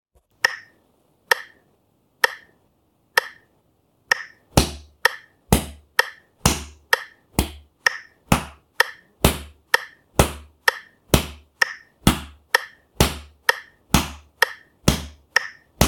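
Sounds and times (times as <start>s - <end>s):
back beat: 4.1s - 15.8s.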